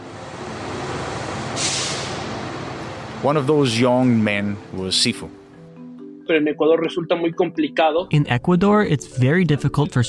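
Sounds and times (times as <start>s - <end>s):
large bus idling: 0.0s - 4.9s
bus air brakes hissing as it parks: 1.5s - 3.0s
speech: 3.2s - 5.4s, 6.3s - 10.0s.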